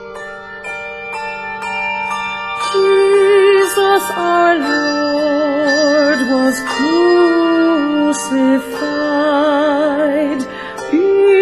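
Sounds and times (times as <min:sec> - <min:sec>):
handbell choir ringing sustained chords: 0:00.0 - 0:11.4
speech: 0:06.3 - 0:07.4, 0:08.1 - 0:09.3.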